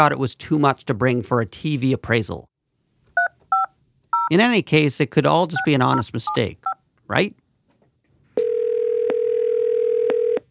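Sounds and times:
speech: 0.0 - 2.5, 4.3 - 7.4
telephone dial tone: 8.4 - 10.4.

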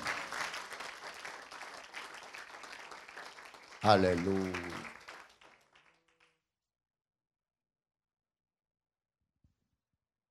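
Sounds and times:
applause: 0.0 - 6.4
speech: 3.8 - 4.9.

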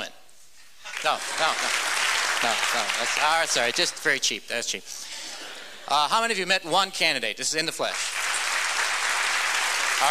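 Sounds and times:
audience applauding: 0.9 - 4.2, 7.9 - 10.0
speech: 1.0 - 5.1, 5.8 - 8.2.

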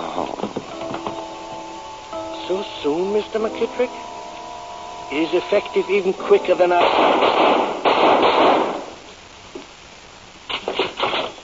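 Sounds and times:
speech: 2.5 - 4.1, 5.1 - 8.2
gunshot in a radio drama: 6.8 - 9.0, 10.5 - 11.4
quieter gunshot bursts: 6.8 - 9.0.

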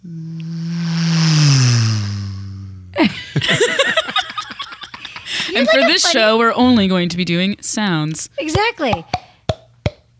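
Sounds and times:
voice imitating a car speeding past on a highway: 0.0 - 2.9
speech: 3.0 - 4.0, 5.6 - 9.2
laughter: 3.0 - 6.3.

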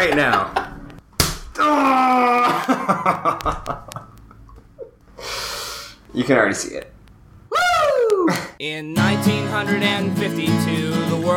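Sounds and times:
speech: 0.0 - 0.6, 1.6 - 4.0, 6.2 - 6.9, 8.3 - 11.3
people laughing: 0.0 - 0.9, 2.4 - 4.2
knife-edge chop slap in a wrestling video game: 1.2 - 1.5
person shouting: 1.6 - 2.7, 7.5 - 8.6.

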